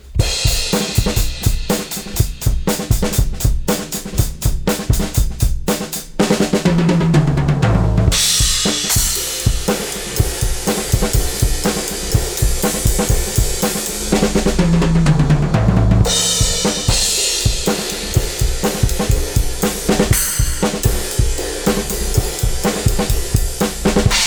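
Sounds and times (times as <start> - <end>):
drums: 0.0 - 24.2.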